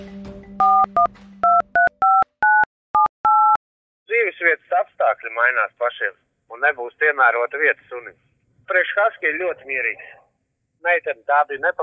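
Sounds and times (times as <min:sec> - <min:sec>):
dial tone: 0:00.6 - 0:03.6
speech: 0:00.9 - 0:01.4, 0:05.2 - 0:10.2, 0:10.8 - 0:11.8.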